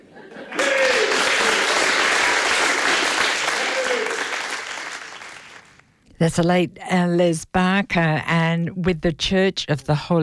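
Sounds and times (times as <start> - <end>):
laughter: 0.0 - 1.9
audience clapping: 0.4 - 5.8
speech: 6.2 - 10.2.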